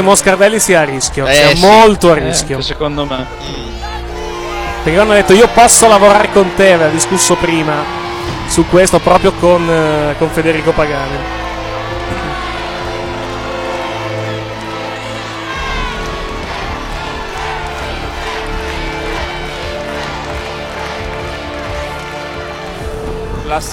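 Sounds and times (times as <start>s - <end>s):
speech: 0.0s - 3.8s, 4.8s - 11.4s, 23.5s - 23.7s
stadium crowd chanting at a football match: 3.3s - 23.4s.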